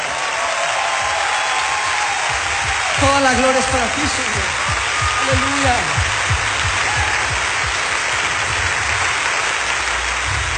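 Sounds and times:
audience applause: 0.0 - 10.5
speech: 3.1 - 6.1.

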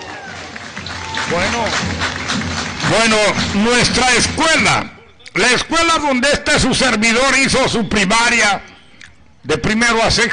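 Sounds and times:
applause welcoming a school: 0.0 - 4.6
speech: 1.3 - 8.7, 9.4 - 10.3.

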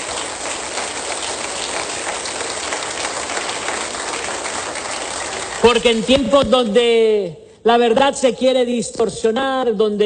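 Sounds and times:
audience applause: 0.0 - 6.1
speech: 5.6 - 10.0.

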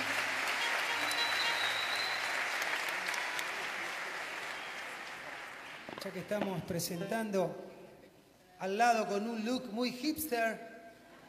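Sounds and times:
audience applause: 0.0 - 6.4
speech: 6.0 - 7.8, 8.6 - 10.7.

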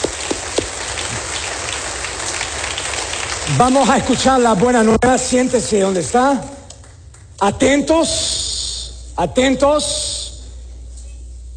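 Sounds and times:
applause: 0.0 - 7.4
speech: 3.5 - 6.6, 7.4 - 8.4, 9.2 - 10.1.

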